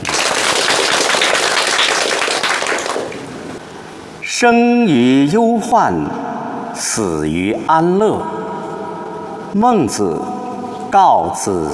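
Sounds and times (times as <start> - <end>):
crowd applauding: 0.0 - 3.3
speech: 4.4 - 6.2, 6.8 - 8.5, 9.5 - 10.3, 10.9 - 11.7.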